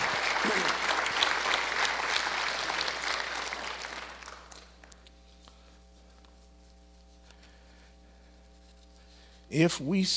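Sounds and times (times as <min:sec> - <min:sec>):
audience clapping hands: 0:00.0 - 0:05.0.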